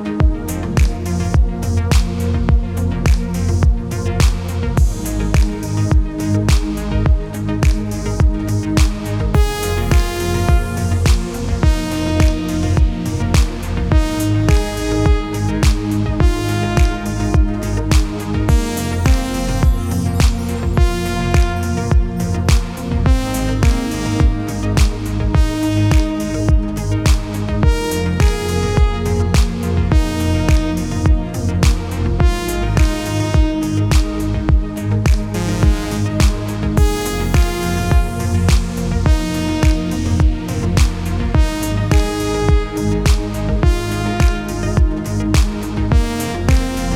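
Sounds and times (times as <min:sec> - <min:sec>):
jogging music: 0:00.2 - 0:46.9.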